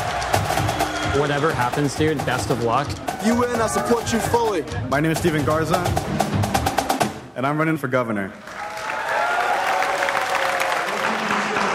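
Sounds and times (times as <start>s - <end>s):
audience applause: 0.0s - 2.6s, 8.4s - 11.7s
speech: 1.2s - 6.2s, 7.4s - 8.5s.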